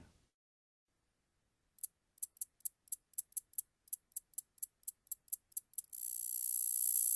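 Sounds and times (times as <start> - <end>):
common meadow katydid Orchelimum vulgare song: 1.8 - 7.1.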